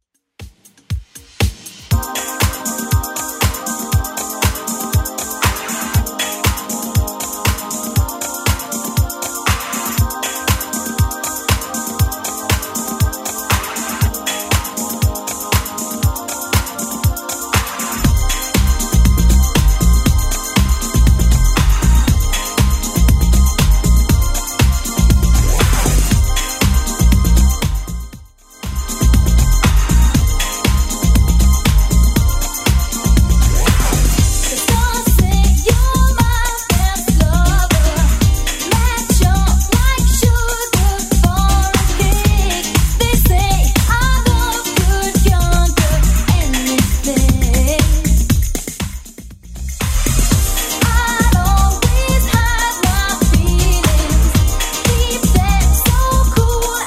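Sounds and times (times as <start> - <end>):
1980s style music at 119 bpm: 0.4 - 56.8.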